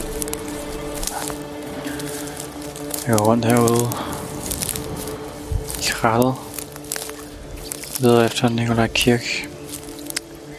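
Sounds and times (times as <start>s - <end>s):
light rain starting to fall outdoors: 0.0s - 10.5s
speech: 3.1s - 4.1s, 6.0s - 6.4s, 8.0s - 9.5s.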